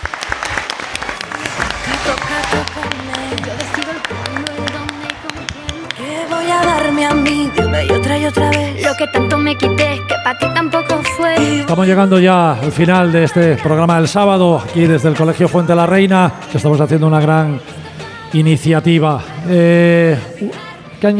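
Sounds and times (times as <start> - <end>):
audience applause: 0.0 - 7.6
speech: 7.0 - 21.1.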